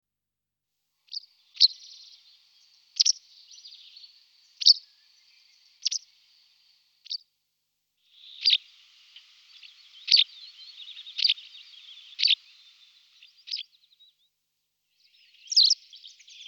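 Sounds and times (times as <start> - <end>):
white wagtail Motacilla alba chirping and twittering: 1.1 - 6.3, 8.1 - 14.3, 15.0 - 16.4.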